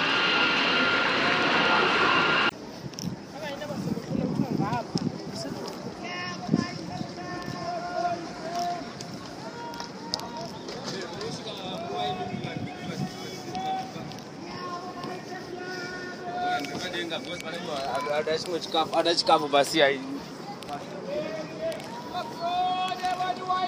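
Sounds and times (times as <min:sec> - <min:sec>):
people talking: 0:00.0 - 0:02.5, 0:03.4 - 0:23.6
departing Indian Airlines aircraft engine on flight IC408 to Calcutta: 0:00.0 - 0:02.6.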